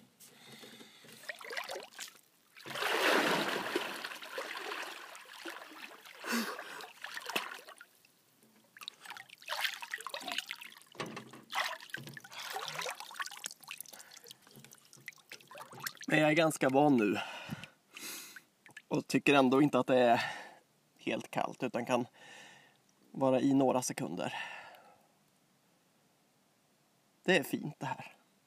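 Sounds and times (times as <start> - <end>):
lake water splashing: 1.2 - 17.0
speech: 16.1 - 17.4, 18.9 - 20.4, 21.0 - 22.4, 23.2 - 24.5, 27.3 - 28.2.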